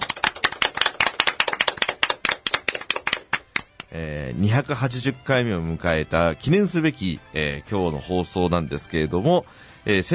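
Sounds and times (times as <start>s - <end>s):
crowd applause: 0.0s - 3.4s
speech: 3.9s - 10.1s.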